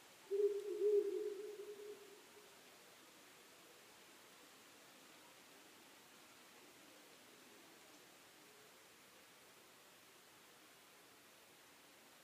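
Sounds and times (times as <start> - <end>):
owl hooting: 0.3 - 2.4.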